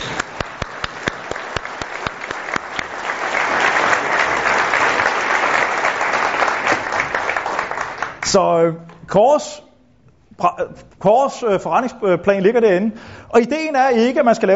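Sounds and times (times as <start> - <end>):
audience applauding: 0.0 - 8.2
speech: 8.3 - 9.7, 10.4 - 14.5.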